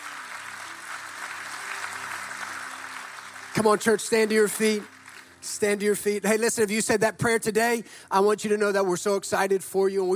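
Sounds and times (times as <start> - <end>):
church audience applauding: 0.0 - 5.9
speech: 3.6 - 10.1.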